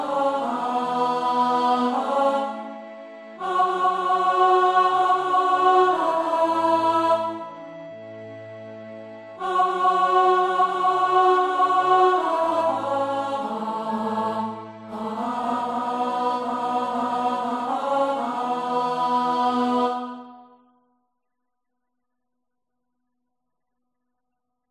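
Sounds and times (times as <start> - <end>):
soprano singing: 0.0 - 8.1, 9.3 - 20.4.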